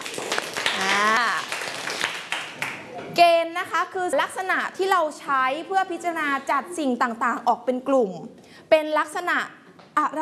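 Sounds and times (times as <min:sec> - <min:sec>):
classroom applause: 0:00.0 - 0:02.9
speech: 0:03.2 - 0:10.2.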